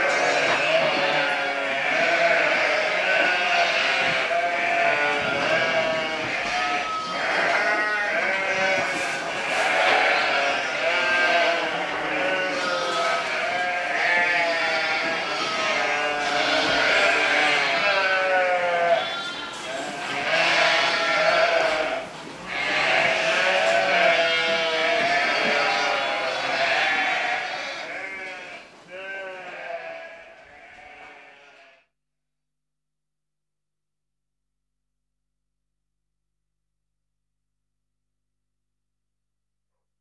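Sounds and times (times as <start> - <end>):
sheep bleating: 0.0 - 31.9.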